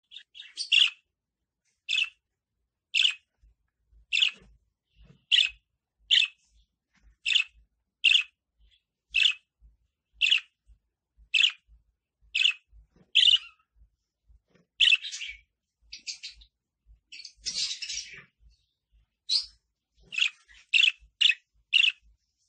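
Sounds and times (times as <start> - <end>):
lovebird singing: 0.0 - 1.1, 1.9 - 2.2, 2.9 - 3.3, 4.1 - 10.6, 11.2 - 13.8, 14.8 - 22.1.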